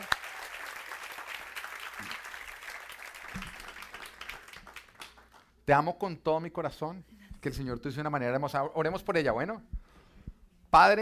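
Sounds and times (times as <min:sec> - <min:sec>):
audience applause: 0:00.0 - 0:05.5
speech: 0:05.7 - 0:09.7, 0:10.8 - 0:11.0.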